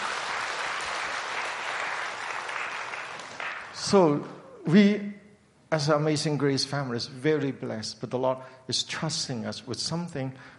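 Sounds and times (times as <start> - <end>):
audience hand clapping: 0.0 - 4.4
speech: 3.8 - 10.5.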